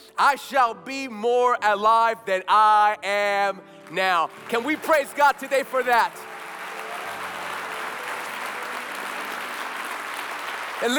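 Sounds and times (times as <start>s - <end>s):
speech: 0.2s - 6.3s, 10.8s - 10.9s
audience applauding: 3.8s - 10.9s.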